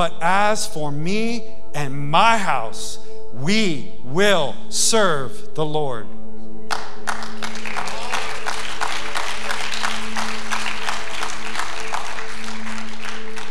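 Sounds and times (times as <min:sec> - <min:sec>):
speech: 0:00.0 - 0:06.2
audience applause: 0:06.7 - 0:13.5.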